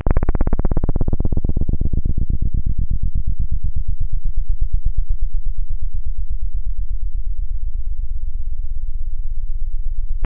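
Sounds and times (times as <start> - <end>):
bass: 0.0 - 10.2.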